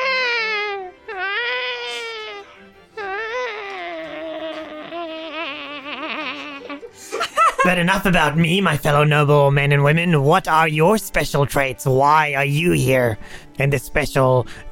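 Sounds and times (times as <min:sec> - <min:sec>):
babies screaming and crying: 0:00.0 - 0:07.2
laughter: 0:06.4 - 0:07.8
speech: 0:07.6 - 0:14.7.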